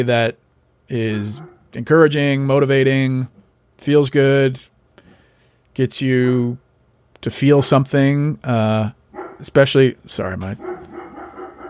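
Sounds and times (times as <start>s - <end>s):
speech: 0.0s - 4.7s, 5.8s - 6.6s, 7.2s - 10.9s
hounds barking: 1.3s - 1.8s, 9.1s - 9.5s, 10.5s - 11.6s.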